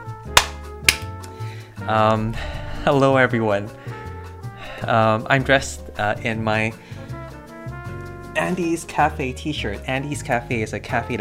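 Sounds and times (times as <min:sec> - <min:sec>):
hand clap for audio-video syncing: 0:00.3 - 0:01.4
speech: 0:01.8 - 0:04.0, 0:04.8 - 0:06.9, 0:08.4 - 0:11.2.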